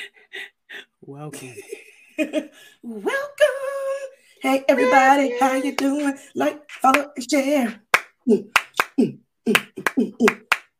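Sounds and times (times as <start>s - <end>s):
speech: 1.1s - 10.5s
hand clapping: 4.8s - 10.7s.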